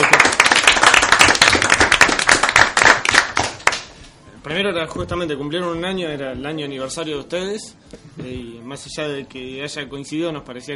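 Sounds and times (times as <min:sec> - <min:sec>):
crowd applauding: 0:00.0 - 0:04.0
speech: 0:04.7 - 0:10.7.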